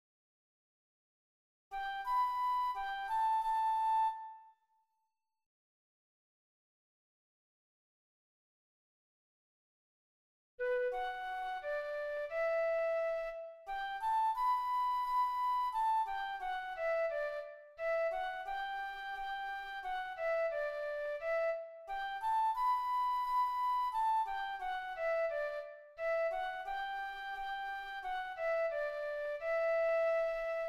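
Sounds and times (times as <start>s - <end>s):
flute: 1.7s - 5.0s, 10.6s - 30.6s.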